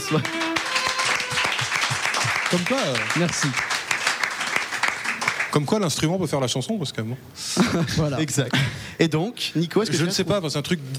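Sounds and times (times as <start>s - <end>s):
applause: 0.0s - 5.7s
speech: 0.1s - 0.4s, 2.5s - 3.7s, 5.5s - 10.9s
laughter: 1.0s - 2.6s, 7.6s - 8.1s.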